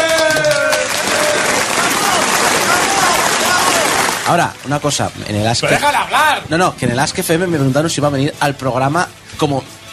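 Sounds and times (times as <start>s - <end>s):
audience applause: 0.0s - 5.0s
speech: 4.3s - 9.9s.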